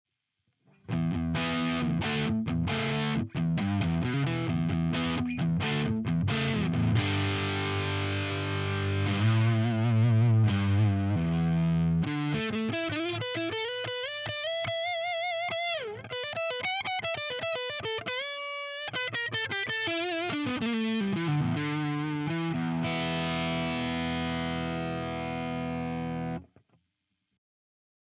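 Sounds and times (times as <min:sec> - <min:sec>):
Harley Benton CST 24HB distorted electric guitar neck pickup: 0:00.8 - 0:26.5.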